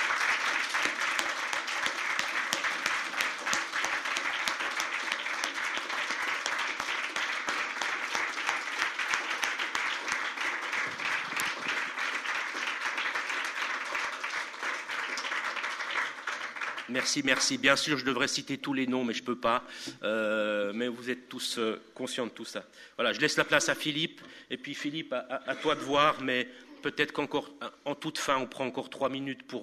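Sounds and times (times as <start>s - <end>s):
audience applause: 0.0s - 17.6s
speech: 16.9s - 29.6s.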